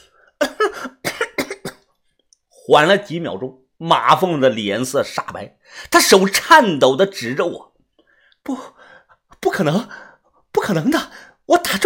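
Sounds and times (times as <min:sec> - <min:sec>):
raspy coughing: 0:00.4 - 0:01.9
speech: 0:02.7 - 0:07.7, 0:08.4 - 0:08.8, 0:09.4 - 0:10.0, 0:10.7 - 0:11.8.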